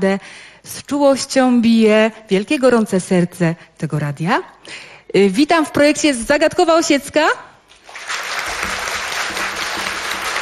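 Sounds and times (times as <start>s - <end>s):
speech: 0.0s - 8.2s
studio audience applause at a live Polish radio broadcast: 7.7s - 10.4s.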